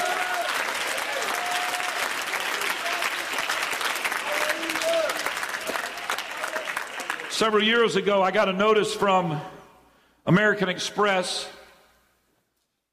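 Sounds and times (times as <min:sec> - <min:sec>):
church congregation clapping during a service: 0:00.0 - 0:08.2
speech: 0:07.4 - 0:09.5, 0:10.3 - 0:11.6.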